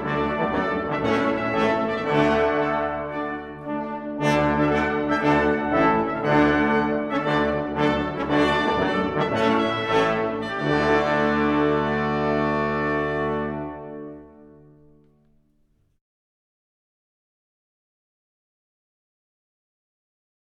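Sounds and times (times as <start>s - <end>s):
fanfare: 0.0s - 14.8s.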